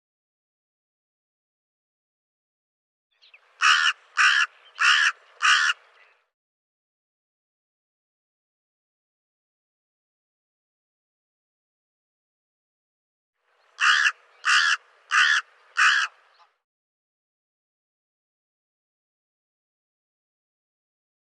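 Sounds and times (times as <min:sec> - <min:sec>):
bird giving harsh raspy caws: 0:03.3 - 0:06.2, 0:13.6 - 0:16.6.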